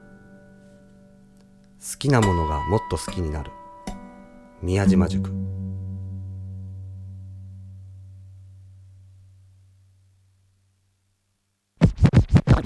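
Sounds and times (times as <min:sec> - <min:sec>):
speech: 0:01.8 - 0:03.6, 0:04.6 - 0:05.6
vinyl record scratching on turntable: 0:11.8 - 0:12.6.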